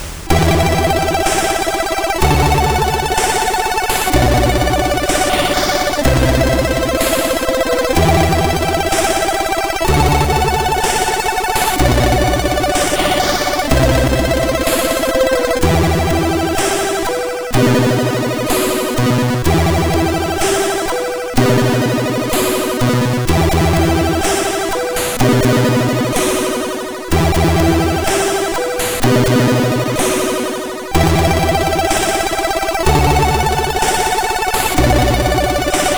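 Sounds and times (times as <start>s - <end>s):
techno music on a MOS6581R4 SID chip: 0.3s - 35.9s.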